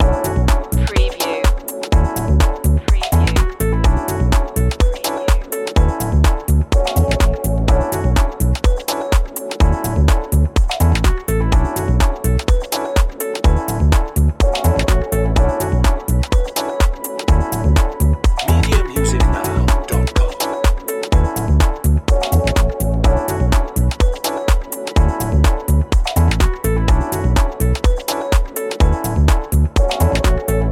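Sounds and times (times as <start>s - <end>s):
lounge music loop: 0.0s - 30.6s.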